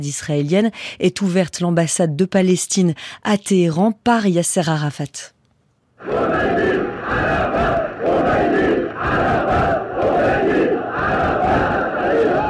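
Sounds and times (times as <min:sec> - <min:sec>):
speech: 0:00.0 - 0:05.4, 0:06.0 - 0:08.4
crowd of Iranians chanting slogans: 0:06.0 - 0:12.4.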